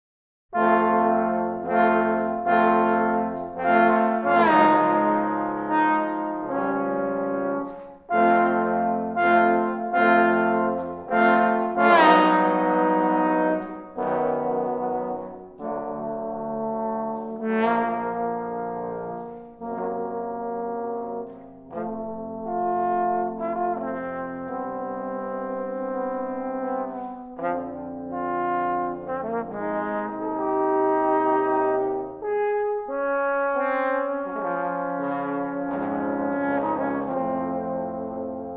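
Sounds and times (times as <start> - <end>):
trombone quartet playing a suite: 0.5 - 38.5.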